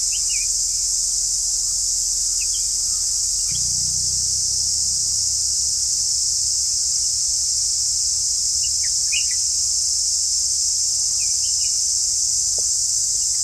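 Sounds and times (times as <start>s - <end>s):
deep forest ambience in the Western Ghats: 0.0s - 13.4s.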